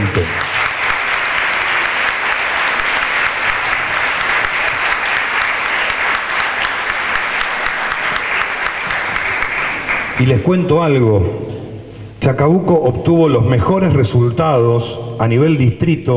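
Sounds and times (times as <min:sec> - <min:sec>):
audience applauding: 0:00.0 - 0:10.6
speech: 0:10.3 - 0:11.6, 0:12.2 - 0:16.1.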